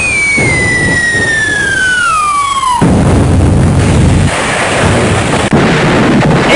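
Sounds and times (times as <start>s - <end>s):
falling whistle: 0.0s - 2.8s
dense roaring rumble: 0.0s - 6.5s
loud explosion sound effect: 0.0s - 6.5s.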